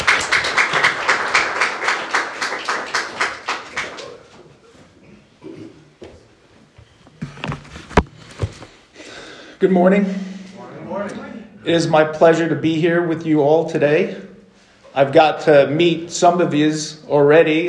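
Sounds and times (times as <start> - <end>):
audience applause: 0.0 - 4.4
speech: 9.6 - 10.3, 11.6 - 14.2, 15.0 - 17.6.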